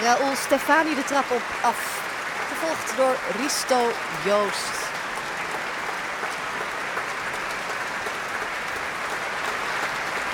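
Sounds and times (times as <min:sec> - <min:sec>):
speech: 0:00.0 - 0:04.8
concert hall audience applause: 0:00.0 - 0:10.3.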